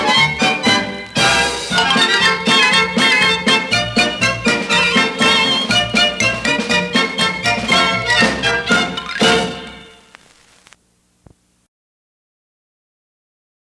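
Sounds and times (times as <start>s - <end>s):
gypsy polka music: 0.0s - 10.2s.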